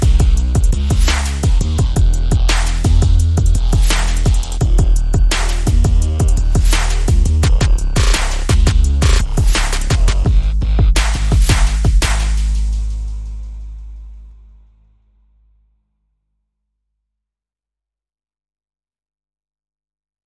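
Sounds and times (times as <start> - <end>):
percussion: 0.0 - 14.5
bass: 0.0 - 16.3.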